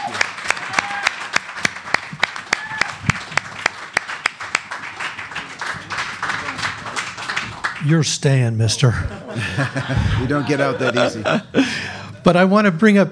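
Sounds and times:
audience applause: 0.0 - 8.0
speech: 7.8 - 13.1
laughter: 8.8 - 12.2.

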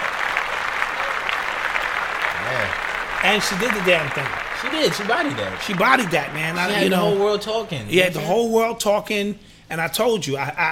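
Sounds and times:
small group clapping: 0.0 - 7.4
speech: 3.2 - 10.7.

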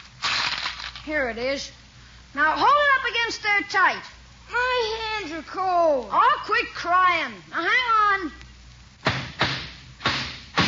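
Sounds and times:
speech: 1.0 - 8.4
hammering a nail into wood: 9.1 - 10.6.

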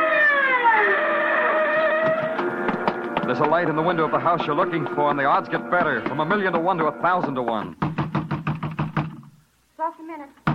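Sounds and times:
wailing siren sweeping past: 0.0 - 5.7
low traffic rumble: 0.0 - 9.0
speech: 3.3 - 7.8, 10.1 - 10.4.

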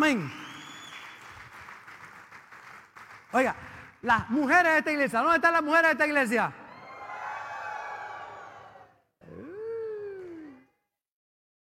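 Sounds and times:
speech: 0.1 - 0.4, 3.3 - 6.6
audience applause: 0.4 - 3.3, 6.8 - 8.9, 10.1 - 10.6.

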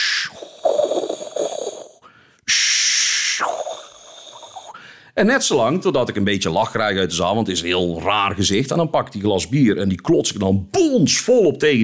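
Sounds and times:
person imitating mechanical breathing of a helmeted villain: 0.0 - 5.2
speech: 5.2 - 11.8.

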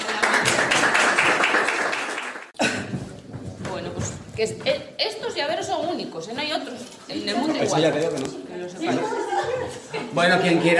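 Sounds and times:
audience applause: 0.0 - 2.6
speech: 4.4 - 9.2, 10.1 - 10.7
laughter: 8.8 - 10.7.

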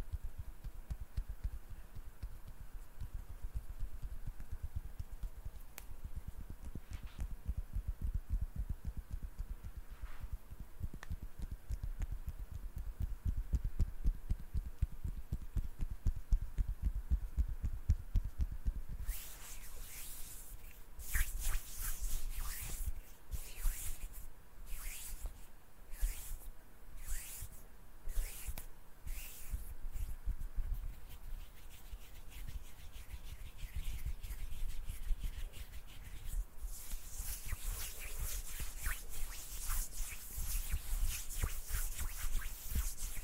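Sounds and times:
hands rubbing and brushing: 0.0 - 8.2, 8.8 - 43.2
hissy scrapes: 9.9 - 10.4, 19.0 - 30.2, 30.8 - 43.2.

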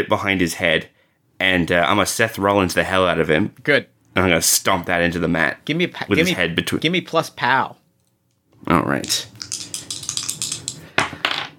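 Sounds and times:
speech: 0.0 - 7.8, 8.6 - 9.6
dice clattering: 9.0 - 11.5.

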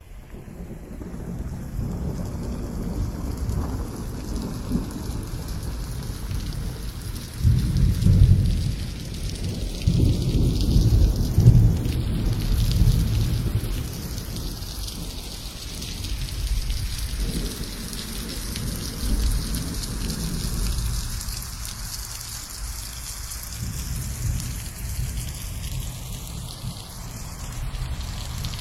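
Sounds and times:
steady rain: 0.0 - 28.5
low thunder rumbles: 0.1 - 28.5.

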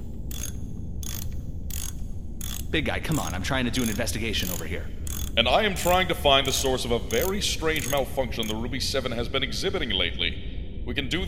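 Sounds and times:
metallic tool noise while working on a car: 0.0 - 8.6
low mechanical rumble: 0.0 - 11.2
speech: 2.7 - 11.2.

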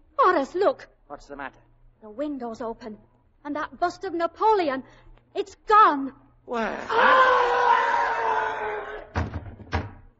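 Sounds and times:
speech: 0.3 - 7.6
someone falling against a front door: 9.1 - 10.1.

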